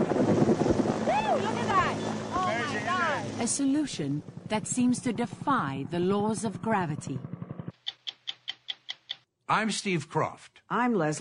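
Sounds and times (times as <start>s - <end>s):
52-year-old helicopter flying: 0.0s - 7.9s
speech: 3.5s - 7.3s, 9.5s - 11.1s.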